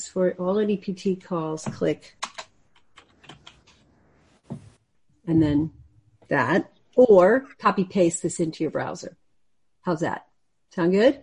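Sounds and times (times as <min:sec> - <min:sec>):
speech: 0:00.1 - 0:02.3, 0:05.3 - 0:09.2, 0:09.8 - 0:11.2
typing on a computer keyboard: 0:02.2 - 0:03.8.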